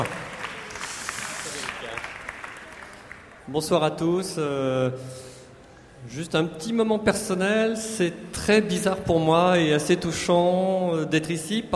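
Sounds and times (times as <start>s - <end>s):
speech: 0.0s - 0.2s, 3.5s - 5.3s, 6.0s - 11.7s
audience applause at a film festival awards ceremony: 0.0s - 3.4s.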